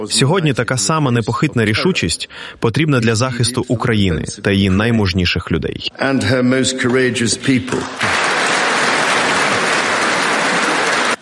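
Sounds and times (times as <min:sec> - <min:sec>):
speech: 0:00.0 - 0:08.3
standing ovation applause from a large crowd in a hall: 0:07.7 - 0:11.2.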